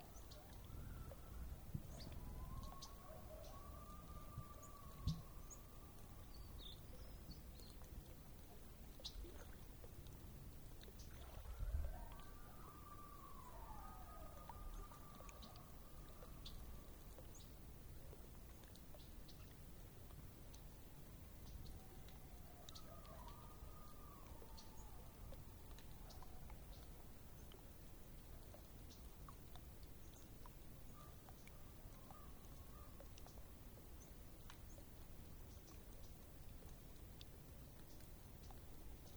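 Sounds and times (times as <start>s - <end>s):
lake soundscape: 0.0s - 39.1s.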